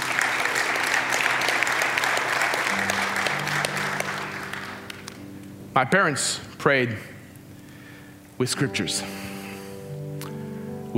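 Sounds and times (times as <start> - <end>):
audience applauding: 0.0 - 5.4
speech: 5.8 - 7.1, 8.4 - 9.3.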